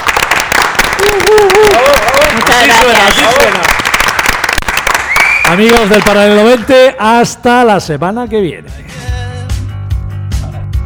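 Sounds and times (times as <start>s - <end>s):
audience applause for a group of invited guests: 0.0s - 6.7s
speech: 1.2s - 3.8s, 5.5s - 8.9s.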